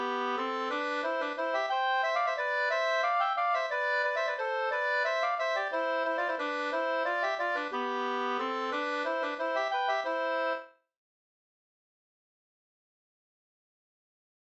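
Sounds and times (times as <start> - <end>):
waltz music: 0.0 - 10.7.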